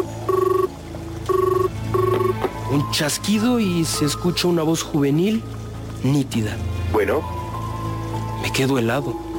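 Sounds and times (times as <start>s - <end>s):
telephone ringback tone: 0.0s - 0.7s, 1.3s - 2.4s
speech: 2.9s - 7.4s, 8.4s - 9.2s.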